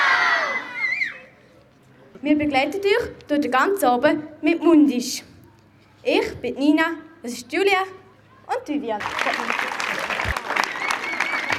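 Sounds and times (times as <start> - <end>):
speech: 2.2 - 5.3, 6.0 - 9.6
audience applause at a concert evening: 9.0 - 11.5.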